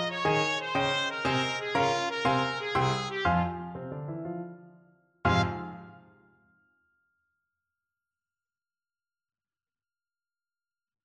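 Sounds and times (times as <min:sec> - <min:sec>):
trumpet playing a tarantella: 0:00.0 - 0:04.0, 0:05.3 - 0:06.1.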